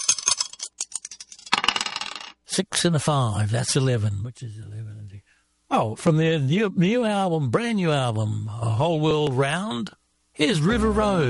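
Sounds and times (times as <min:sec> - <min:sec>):
dice thrown and rolling across a surface: 0:00.0 - 0:02.4
speech: 0:02.6 - 0:11.2.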